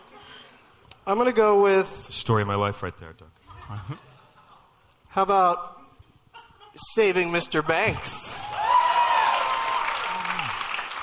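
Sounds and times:
speech: 0:01.0 - 0:04.1, 0:05.2 - 0:05.8, 0:06.8 - 0:08.5
audience applause: 0:08.4 - 0:11.0
faint cheer: 0:08.4 - 0:11.0.

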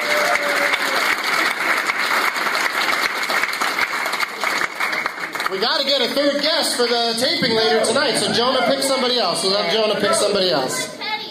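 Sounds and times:
audience applause: 0:00.0 - 0:07.1
speech: 0:05.5 - 0:11.0.

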